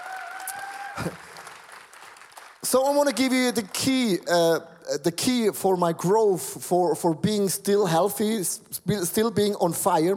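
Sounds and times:
audience applause: 0.0s - 3.4s
speech: 2.7s - 10.1s.

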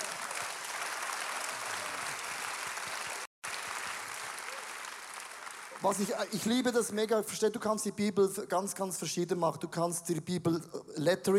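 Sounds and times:
audience applause: 0.0s - 6.4s
speech: 5.8s - 11.3s.

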